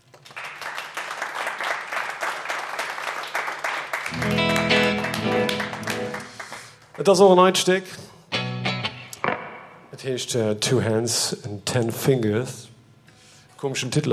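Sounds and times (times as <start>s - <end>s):
audience applause at a live music performance: 0.0s - 7.2s
live music performance: 4.1s - 6.6s, 8.3s - 9.2s
speech: 7.0s - 8.1s, 10.0s - 12.7s, 13.6s - 14.1s.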